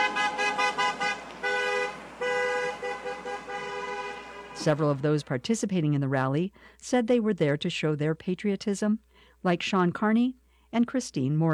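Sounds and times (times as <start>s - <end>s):
car horns honking from passing traffic: 0.0s - 5.2s
speech: 4.6s - 11.5s.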